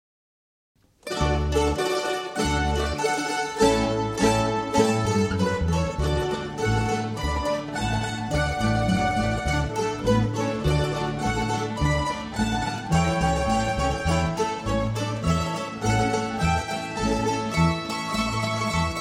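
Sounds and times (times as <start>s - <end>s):
mandolin march: 1.0s - 19.0s.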